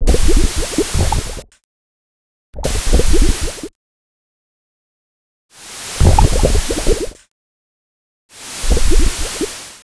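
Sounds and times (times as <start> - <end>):
lava: 0.0 - 1.5, 2.6 - 3.7, 5.6 - 7.3, 8.3 - 9.8.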